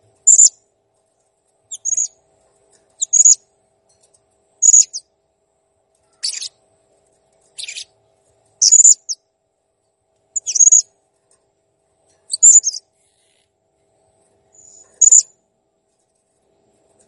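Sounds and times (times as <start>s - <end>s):
blue-crowned hanging parrot calls: 0.3s - 0.5s, 1.7s - 2.2s, 3.0s - 3.4s, 4.6s - 5.0s, 6.2s - 6.6s, 7.6s - 7.9s, 8.6s - 9.2s, 10.4s - 10.8s, 12.3s - 12.8s, 14.6s - 15.3s.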